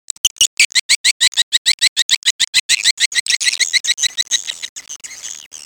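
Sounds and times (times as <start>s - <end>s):
swiftlets twittering and clicking: 0.5s - 4.7s.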